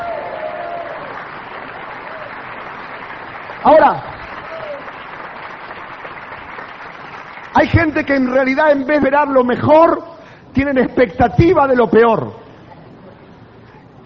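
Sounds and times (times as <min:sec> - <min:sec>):
audience applause: 0:00.0 - 0:08.6
speech: 0:03.6 - 0:04.1, 0:07.6 - 0:12.4.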